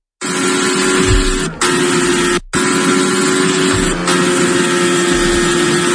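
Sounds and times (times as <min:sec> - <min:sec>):
Formula 1 race car engine roaring: 0:00.2 - 0:05.9.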